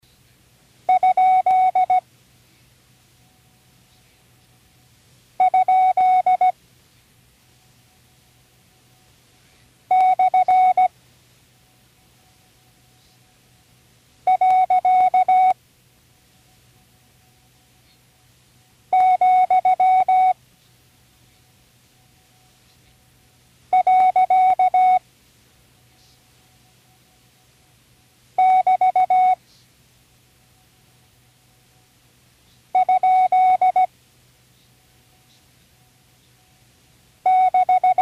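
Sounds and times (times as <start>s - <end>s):
Morse code punctuation review tones: 0.9s - 2.0s, 5.4s - 6.5s, 9.9s - 10.9s, 14.3s - 15.6s, 18.9s - 20.4s, 23.7s - 25.0s, 28.4s - 29.4s, 32.8s - 33.9s, 37.3s - 38.0s.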